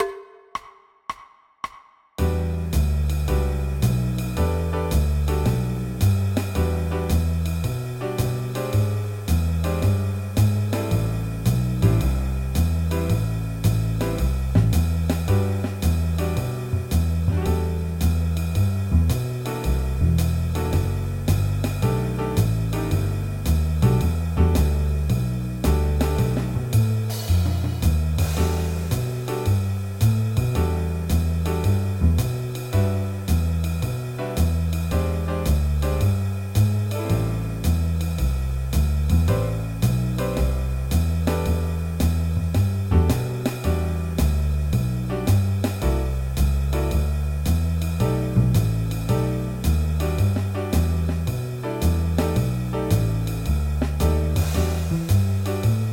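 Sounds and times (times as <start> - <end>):
minor blues: 2.2 - 55.9.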